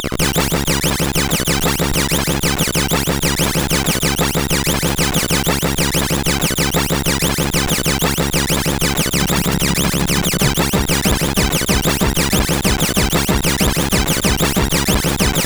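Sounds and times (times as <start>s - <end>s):
SID CSG8580R5 chip intro music: 0.2s - 15.4s.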